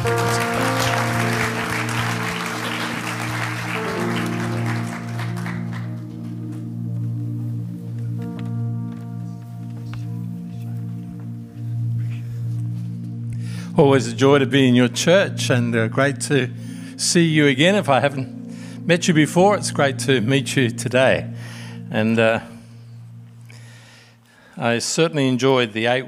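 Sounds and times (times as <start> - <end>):
audience applause welcoming a pastor in a church: 0.0 - 6.6
sustained musical tones: 0.0 - 24.2
speech: 13.8 - 22.5, 24.6 - 26.0.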